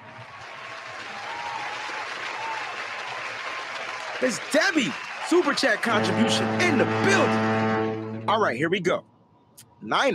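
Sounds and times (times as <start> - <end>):
applause: 0.0 - 7.8
speech: 4.2 - 7.4, 8.3 - 10.1.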